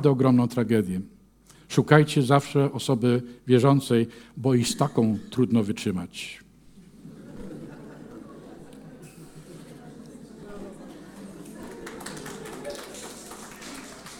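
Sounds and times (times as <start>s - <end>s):
speech: 0.0s - 6.4s
laughter: 6.8s - 14.1s
audience clapping: 10.0s - 14.1s.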